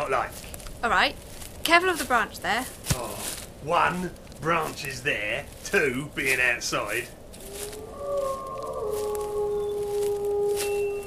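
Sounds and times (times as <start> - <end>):
speech: 0.1 - 8.3
ominous wolf howls: 7.4 - 11.0.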